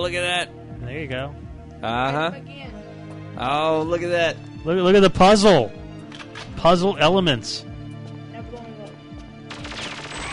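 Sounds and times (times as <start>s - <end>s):
speech: 0.0s - 2.8s, 3.4s - 5.8s, 6.6s - 7.7s
video game soundtrack music: 0.0s - 10.3s
gunshots in a video game: 9.5s - 10.3s.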